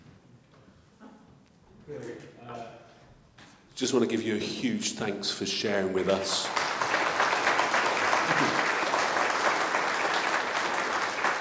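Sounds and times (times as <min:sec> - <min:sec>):
speech: 0:01.9 - 0:02.8, 0:03.8 - 0:06.7
audience clapping: 0:05.6 - 0:11.4.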